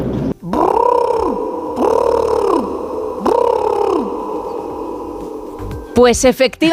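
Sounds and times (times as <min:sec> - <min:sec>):
peacock call: 0:00.5 - 0:06.0
speech: 0:06.0 - 0:06.7.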